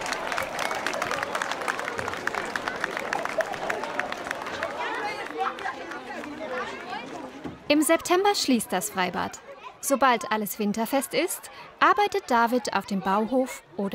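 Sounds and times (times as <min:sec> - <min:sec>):
applause at an outdoor swimming pool: 0:00.0 - 0:07.2
crowd chatter with excited voices: 0:00.0 - 0:13.9
speech: 0:07.7 - 0:13.9.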